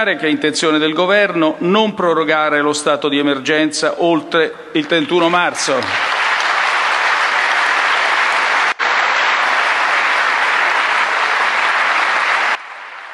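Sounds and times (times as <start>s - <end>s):
speech: 0.0s - 6.2s
applause: 4.8s - 13.1s.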